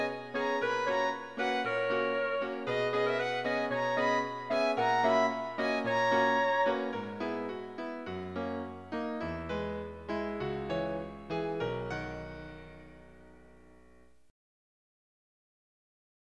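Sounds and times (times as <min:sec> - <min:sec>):
musical trio: 0:00.0 - 0:12.8.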